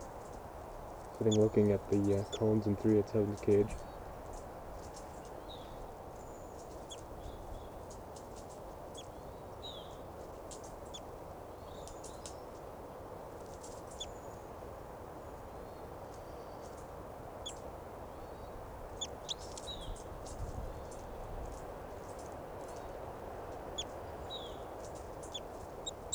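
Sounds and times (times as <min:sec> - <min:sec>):
birds fighting calls: 0:01.2 - 0:03.8, 0:23.6 - 0:26.1
speech: 0:01.2 - 0:03.9.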